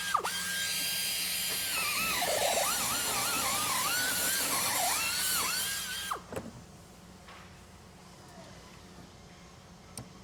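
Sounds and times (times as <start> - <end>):
drilling at construction site: 0.0 - 6.3.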